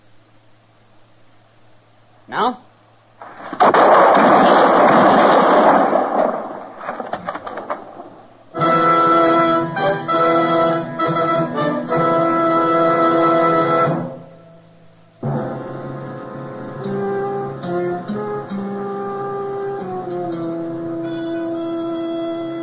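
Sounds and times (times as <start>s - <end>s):
speech: 2.3s - 2.7s
gunfire volley in a Western drama scene: 3.2s - 8.2s
sustained music: 8.6s - 14.6s, 15.2s - 22.6s.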